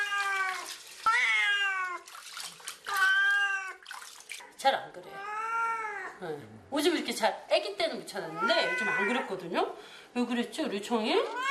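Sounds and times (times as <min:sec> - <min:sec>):
cat meowing while being bathed: 0:00.0 - 0:02.0, 0:03.0 - 0:03.8, 0:05.2 - 0:06.2, 0:08.4 - 0:09.3, 0:11.3 - 0:11.4
speech: 0:04.6 - 0:05.3, 0:06.2 - 0:11.4.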